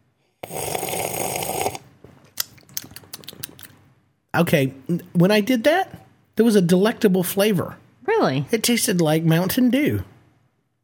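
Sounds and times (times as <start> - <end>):
slurp of soda: 0.4 - 1.9
crackling pops and clicks: 2.3 - 3.8
speech: 4.4 - 10.1.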